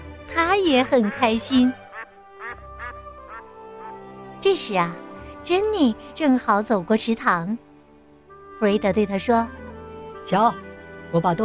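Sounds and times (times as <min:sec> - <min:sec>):
speech: 0:00.4 - 0:01.8, 0:04.4 - 0:07.6, 0:08.6 - 0:09.6, 0:10.3 - 0:11.4
duck quacking: 0:00.8 - 0:04.0.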